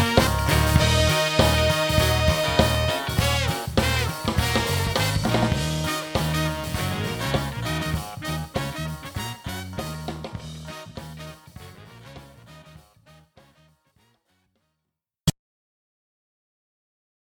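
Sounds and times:
jazz band playing Motown soul: 0.0s - 13.6s.

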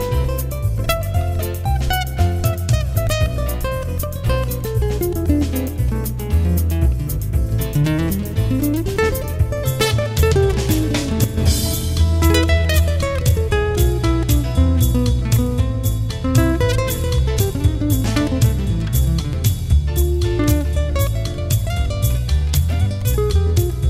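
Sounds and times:
classical guitar playing jazz: 0.0s - 23.8s.

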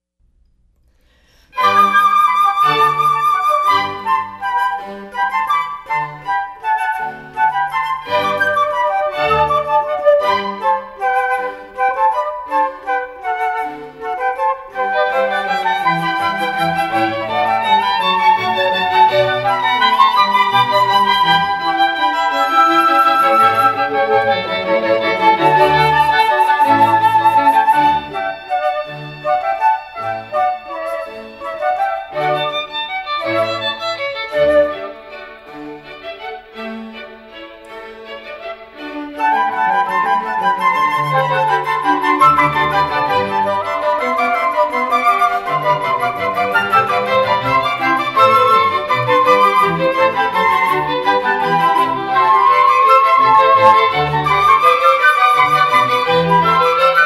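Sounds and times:
flute: 1.5s - 36.6s, 37.3s - 57.0s.

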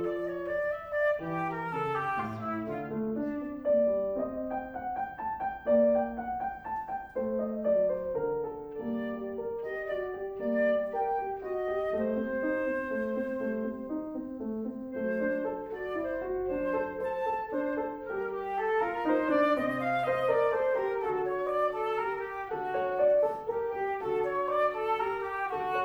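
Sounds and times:
flute playing chamber music: 0.0s - 3.8s, 8.7s - 14.0s, 14.9s - 25.8s
piano playing chamber music: 0.0s - 25.8s.

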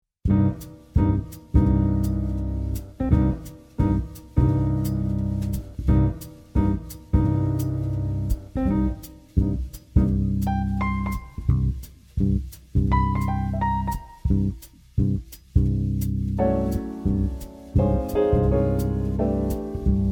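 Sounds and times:
piano: 0.2s - 20.1s.

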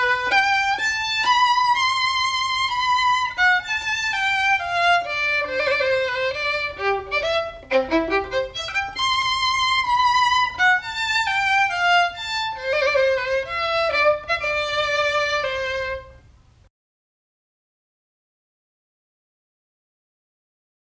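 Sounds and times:
solo violin: 0.0s - 16.3s.

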